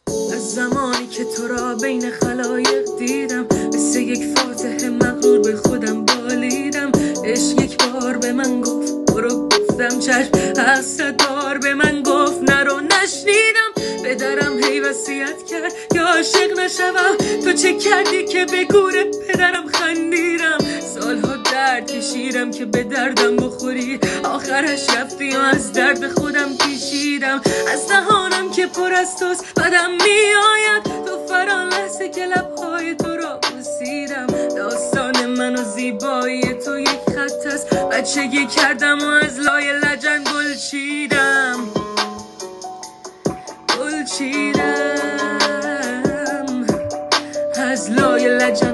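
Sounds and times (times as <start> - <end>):
woman's voice: 0.2 - 41.8, 43.7 - 48.7
sad music: 41.7 - 47.4.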